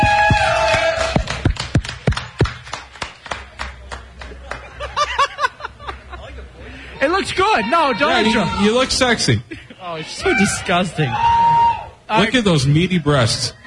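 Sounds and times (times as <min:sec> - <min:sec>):
audience clapping: 0:00.0 - 0:06.1
audience laughing: 0:04.2 - 0:06.8
speech: 0:07.2 - 0:11.5, 0:12.1 - 0:13.6.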